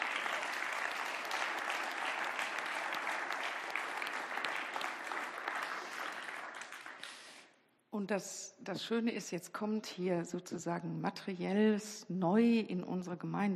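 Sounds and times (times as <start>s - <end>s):
church congregation applauding: 0.0s - 7.4s
speech: 8.0s - 13.5s.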